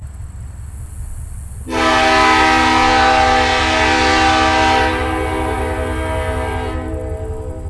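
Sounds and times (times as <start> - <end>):
horn: 1.7 - 7.6.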